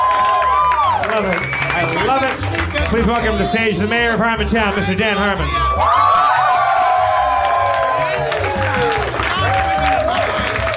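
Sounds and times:
live audience cheering: 0.0s - 2.5s, 5.4s - 10.7s
live audience applause: 0.0s - 3.6s, 5.8s - 10.7s
speech: 2.9s - 6.2s.

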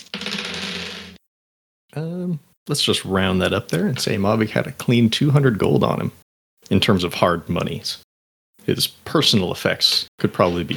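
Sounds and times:
dice being rolled: 0.0s - 1.2s
speech: 2.0s - 8.0s, 8.7s - 10.7s.

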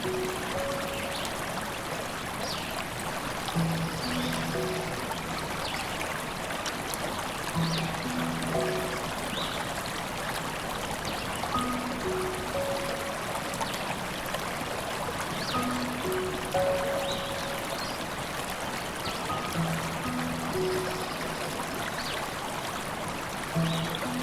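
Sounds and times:
soft low piano notes in a slow melody: 0.0s - 2.1s, 3.5s - 6.6s, 7.5s - 10.2s, 11.5s - 14.7s, 15.4s - 22.3s, 23.5s - 24.2s
river rushing: 0.0s - 24.2s.

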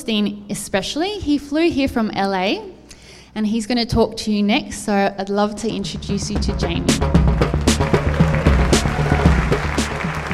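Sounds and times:
speech: 0.0s - 2.7s, 3.4s - 7.2s
loud driving music track with thumping beat and deep bass: 5.9s - 10.3s
crowd applause: 7.3s - 10.3s.

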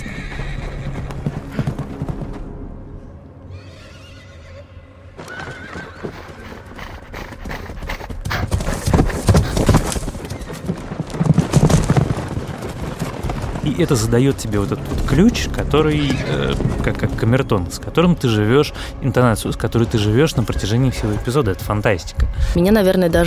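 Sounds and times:
horse whinnying: 0.0s - 1.7s, 3.5s - 6.8s, 15.9s - 16.8s
galloping horse hoofbeats: 0.0s - 2.7s, 5.2s - 18.1s
speech: 13.8s - 23.2s.

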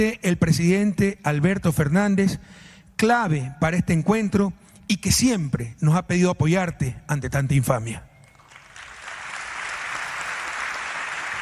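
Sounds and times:
speech: 0.0s - 8.1s
crowd applause in a played recording: 8.2s - 11.3s.

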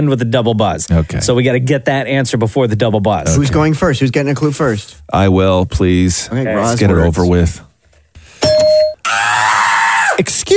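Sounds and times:
speech: 0.0s - 7.7s, 10.2s - 10.5s
ding marking start of timer: 8.4s - 9.0s.

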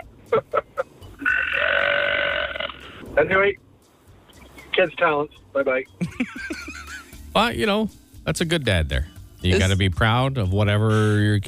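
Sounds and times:
person burping on command: 1.2s - 2.8s
speech: 3.2s - 3.6s, 4.8s - 6.7s, 7.4s - 11.4s
laughter: 6.0s - 7.1s.

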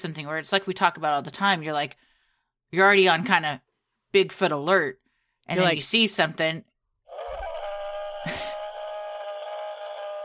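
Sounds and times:
speech: 0.0s - 2.1s, 2.7s - 6.7s
long howl in the forest: 7.1s - 10.2s.

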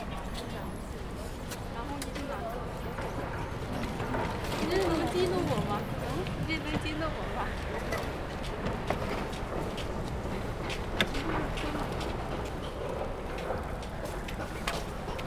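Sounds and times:
city traffic at Peking University south gate: 0.0s - 15.2s.

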